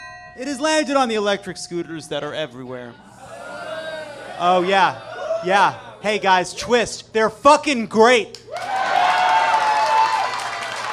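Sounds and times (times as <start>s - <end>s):
speech: 0.4s - 3.1s, 4.4s - 8.4s
audience clapping: 8.3s - 10.9s.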